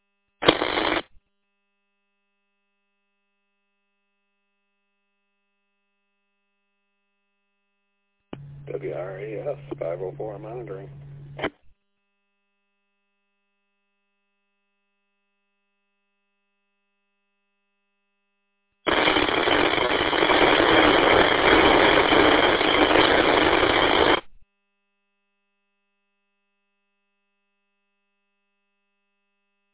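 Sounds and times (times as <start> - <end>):
radio static on a monitored transmission: 0.4 - 1.1, 8.4 - 11.6, 18.9 - 24.3
speech: 8.7 - 11.6.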